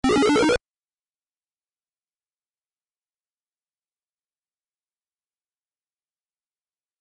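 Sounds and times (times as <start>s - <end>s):
power-up sound: 0.0s - 0.6s.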